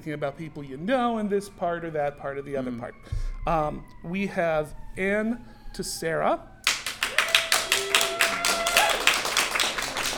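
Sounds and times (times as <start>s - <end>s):
speech: 0.0s - 6.5s
audience clapping: 6.6s - 10.1s.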